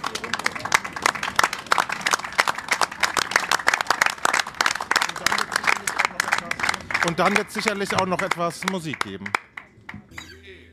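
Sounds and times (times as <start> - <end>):
audience applause: 0.0 - 10.0
speech: 7.0 - 9.4.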